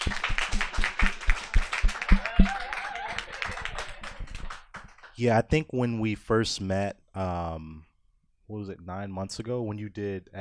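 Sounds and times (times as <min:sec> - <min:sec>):
applause: 0:00.0 - 0:05.2
speech: 0:05.2 - 0:07.9, 0:08.5 - 0:10.3.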